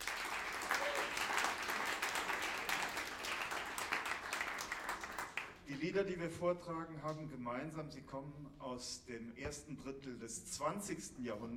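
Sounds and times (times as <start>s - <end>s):
audience applause: 0.0s - 5.6s
speech: 5.7s - 11.5s.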